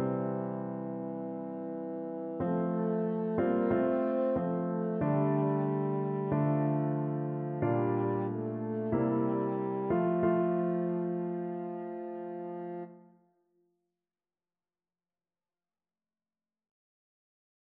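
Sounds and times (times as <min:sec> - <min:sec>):
French horn: 0:00.0 - 0:13.0.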